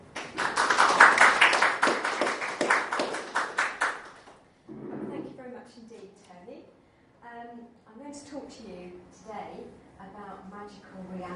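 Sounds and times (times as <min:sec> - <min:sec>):
audience applause welcoming a lecture speaker: 0:00.2 - 0:04.2.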